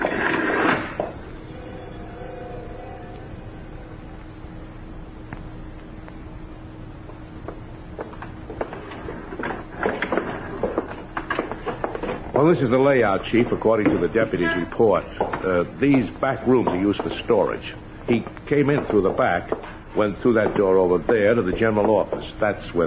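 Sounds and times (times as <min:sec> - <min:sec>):
elevator mechanical hum descending to a basement garage: 0:00.0 - 0:22.8
speech: 0:12.4 - 0:22.8.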